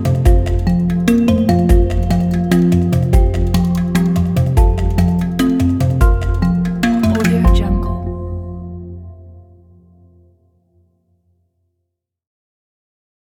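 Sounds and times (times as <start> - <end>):
exotic travel documentary music: 0.0 - 10.3.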